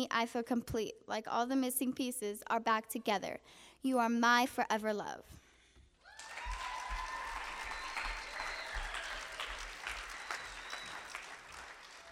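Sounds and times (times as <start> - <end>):
speech: 0.0 - 5.4
audience applause after a poetry reading: 6.0 - 12.1.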